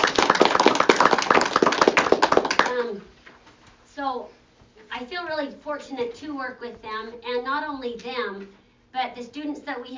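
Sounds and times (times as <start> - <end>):
audience applause: 0.0 - 2.7
speech: 2.8 - 3.2, 4.0 - 9.9.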